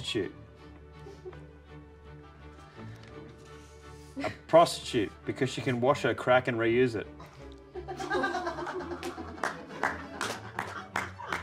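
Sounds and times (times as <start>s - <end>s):
speech: 0.1s - 0.4s, 4.2s - 7.2s
laughter: 7.2s - 11.4s
audience clapping: 8.5s - 11.4s.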